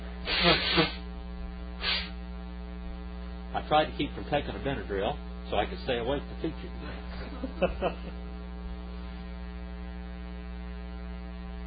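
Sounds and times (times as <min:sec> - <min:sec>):
person blowing nose: 0:00.2 - 0:01.0, 0:01.8 - 0:02.2
speech: 0:00.4 - 0:01.0, 0:03.7 - 0:08.2
laughter: 0:06.8 - 0:08.2.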